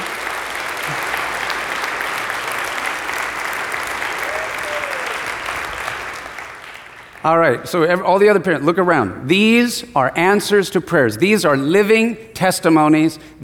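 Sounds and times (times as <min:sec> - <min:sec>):
audience applause: 0:00.0 - 0:07.6
speech: 0:07.2 - 0:13.4.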